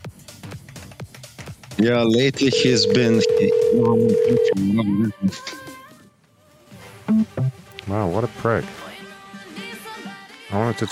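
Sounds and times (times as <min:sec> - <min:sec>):
telephone ringing with electronic ring tones, no answer: 0:01.8 - 0:04.6
speech: 0:01.8 - 0:05.6, 0:07.9 - 0:08.8, 0:10.5 - 0:10.9.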